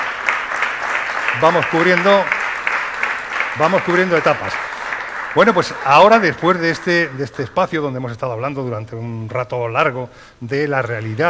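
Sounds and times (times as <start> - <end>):
audience applause: 0.0 - 7.9
speech: 1.4 - 2.4, 3.6 - 4.6, 5.3 - 11.2.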